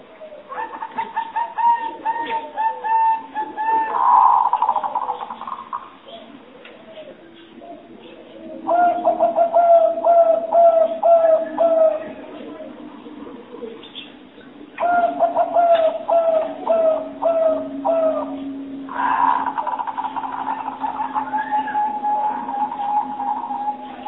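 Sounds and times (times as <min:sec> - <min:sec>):
spotted dove lure call cooing: 0:00.0 - 0:24.0.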